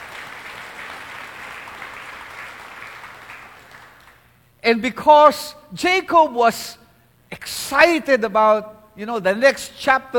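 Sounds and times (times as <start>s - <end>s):
church congregation applauding the Lord: 0.0s - 4.5s
speech: 4.7s - 10.1s.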